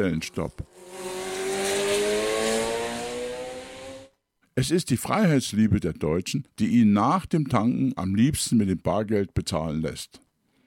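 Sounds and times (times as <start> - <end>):
speech: 0.0 - 1.1, 4.6 - 10.2
car engine revving at full throttle: 0.5 - 4.1.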